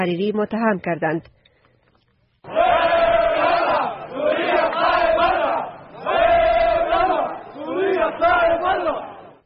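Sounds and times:
speech: 0.0s - 1.4s
crowd of mourners chanting slogans: 2.4s - 9.4s.

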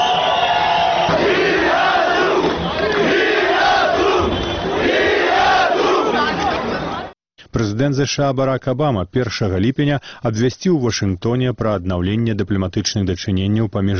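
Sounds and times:
large protest crowd chanting in unison: 0.2s - 7.1s
speech: 7.8s - 13.9s.

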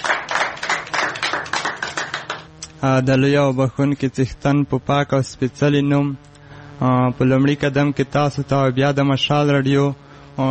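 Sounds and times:
audience clapping in rhythm: 0.0s - 2.5s
speech: 2.8s - 10.4s.

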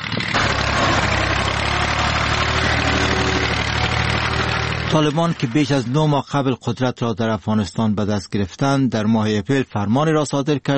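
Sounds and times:
tractor engine destroying poppy field: 0.0s - 6.5s
speech: 4.9s - 10.7s.

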